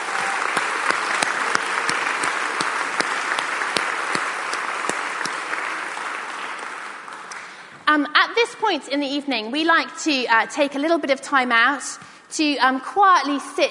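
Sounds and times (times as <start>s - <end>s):
round of applause: 0.0s - 7.7s
speech: 7.9s - 13.6s.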